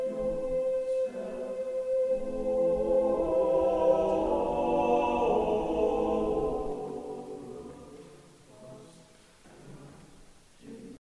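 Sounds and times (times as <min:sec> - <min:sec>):
SATB four-part choir singing: 0:00.0 - 0:08.4.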